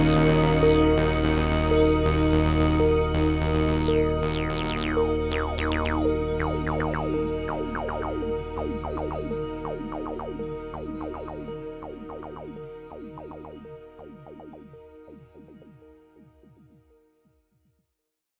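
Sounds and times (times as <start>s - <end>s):
Oberheim OB8 synthesizer mix: 0.0s - 17.3s.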